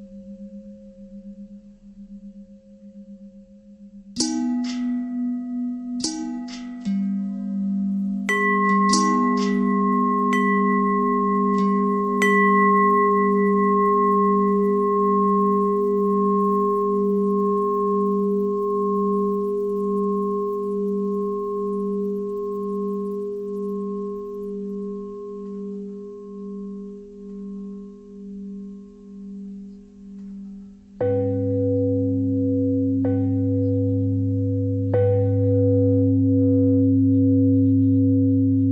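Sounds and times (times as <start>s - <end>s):
long pentatonic bell melody: 0.0s - 29.7s, 30.7s - 38.7s.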